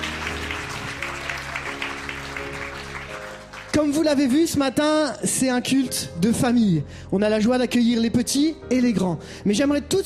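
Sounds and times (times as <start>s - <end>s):
audience applauding loudly: 0.0s - 4.6s
speech: 3.8s - 10.0s.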